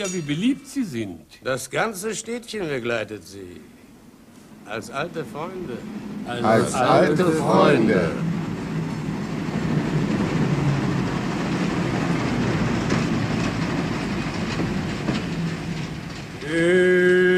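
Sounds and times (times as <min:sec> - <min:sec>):
speech: 0:00.0 - 0:03.8, 0:04.7 - 0:08.4
passenger train rumbling into a station: 0:03.9 - 0:17.3
passenger train wheels clattering on rails: 0:08.2 - 0:16.5.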